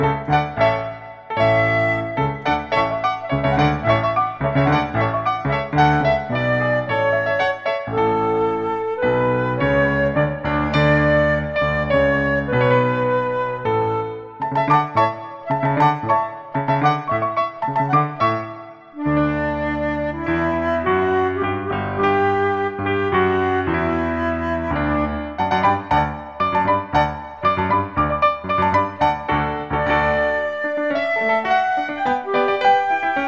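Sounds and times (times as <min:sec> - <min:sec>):
flute: 0:00.0 - 0:33.2
piano playing: 0:00.0 - 0:33.2.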